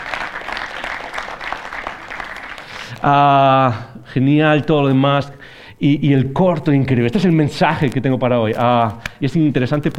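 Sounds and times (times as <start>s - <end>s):
audience applause: 0.0s - 3.0s
speech: 3.0s - 9.9s.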